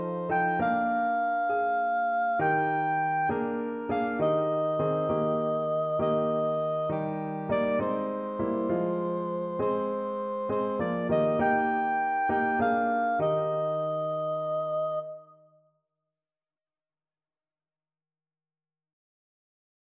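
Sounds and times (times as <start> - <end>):
soprano saxophone playing a hymn: 0.0 - 15.3.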